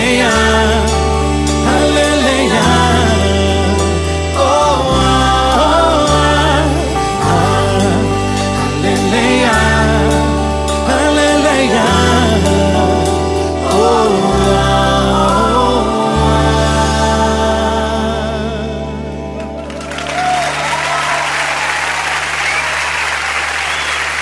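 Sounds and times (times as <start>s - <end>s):
sustained musical chord with bass: 0.0s - 24.1s
audience applause: 19.4s - 24.1s.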